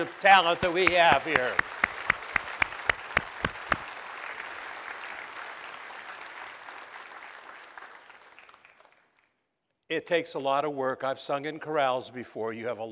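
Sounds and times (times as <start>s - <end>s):
speech: 0.0s - 1.7s, 9.9s - 12.9s
crowd clapping in steady unison rhythm: 0.0s - 9.5s.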